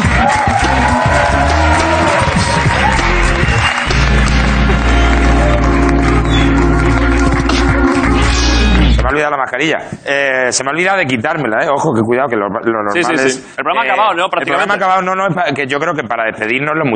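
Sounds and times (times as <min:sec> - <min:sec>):
scattered cheers and whoops: 0:00.0 - 0:06.7
crowd applause: 0:00.0 - 0:09.1
speech: 0:09.4 - 0:16.9.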